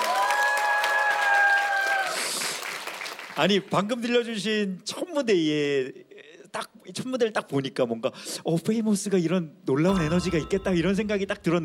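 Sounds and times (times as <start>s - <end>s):
audience applause and cheering: 0.0s - 3.3s
speech: 3.4s - 11.6s.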